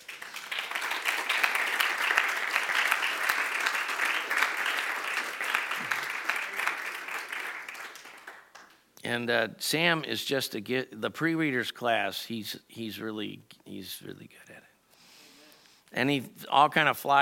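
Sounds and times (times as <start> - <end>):
crowd applauding: 0.0 - 8.8
speech: 9.1 - 14.5, 16.0 - 17.2.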